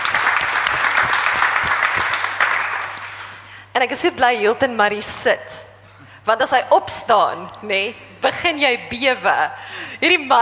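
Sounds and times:
audience applause: 0.0s - 3.4s
speech: 3.8s - 5.6s, 6.3s - 10.4s.

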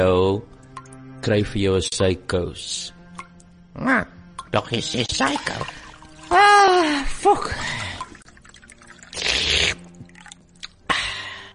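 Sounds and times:
speech: 0.0s - 0.5s, 1.2s - 3.0s, 3.8s - 7.8s
wine being poured and sipped: 4.4s - 10.9s.

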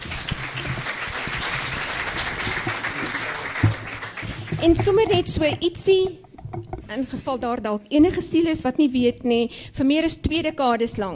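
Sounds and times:
audience applause: 0.0s - 5.2s
speech: 4.6s - 11.1s.

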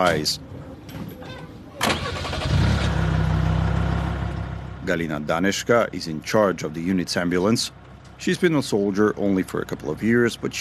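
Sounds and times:
speech: 0.0s - 0.6s, 4.8s - 10.5s
military lorries and all-terrain vehicles driving away: 0.0s - 10.5s.

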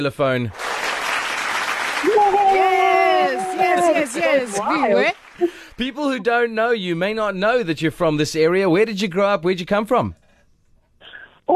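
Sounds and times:
speech: 0.0s - 0.7s, 3.6s - 10.2s
audience applause: 0.5s - 5.9s.

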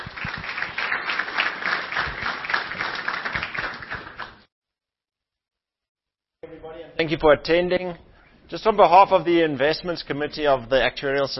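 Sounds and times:
audience applause: 0.0s - 4.4s
speech: 6.5s - 11.3s.

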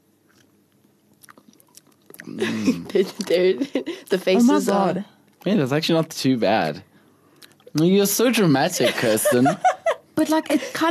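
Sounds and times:
chewing food during a taste test: 0.2s - 4.4s, 7.3s - 7.9s
speech: 2.3s - 6.9s, 7.7s - 10.8s
laughter: 8.6s - 10.8s.

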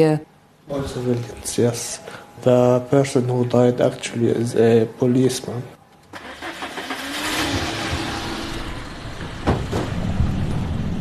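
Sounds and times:
speech: 0.0s - 5.8s
car driving through Nabatieh: 6.1s - 10.9s.

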